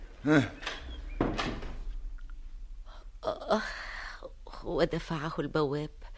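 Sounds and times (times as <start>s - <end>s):
speech: 0.2s - 0.7s, 3.5s - 3.8s, 4.6s - 6.1s
door being shut: 0.4s - 1.9s.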